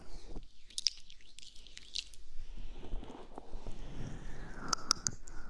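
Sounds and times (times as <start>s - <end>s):
gentle brushing and ear-cleaning: 0.6s - 5.0s.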